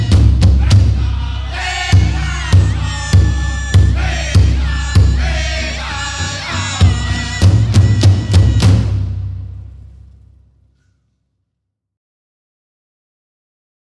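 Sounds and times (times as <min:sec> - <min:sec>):
double beat: 0:00.0 - 0:10.1.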